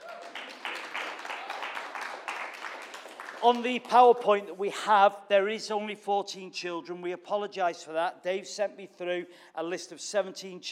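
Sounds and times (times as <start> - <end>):
audience clapping: 0.0 - 4.2
speech: 3.4 - 10.7.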